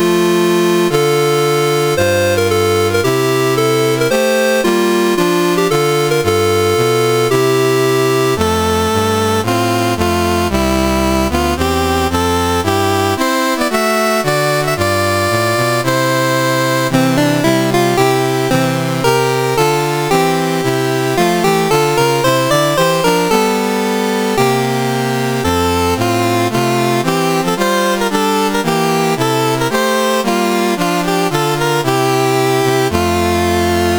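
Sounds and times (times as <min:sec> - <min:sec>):
CSG8580R5 chiptune national anthem: 0:00.0 - 0:33.9.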